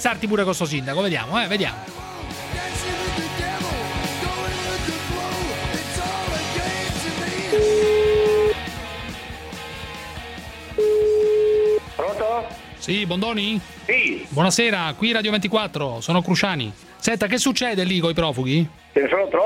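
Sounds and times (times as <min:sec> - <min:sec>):
speech: 0:00.0 - 0:02.2, 0:12.4 - 0:19.4
dense busy music: 0:00.0 - 0:19.4
telephone ringback tone calling a town mayor: 0:07.5 - 0:08.6, 0:10.8 - 0:11.8.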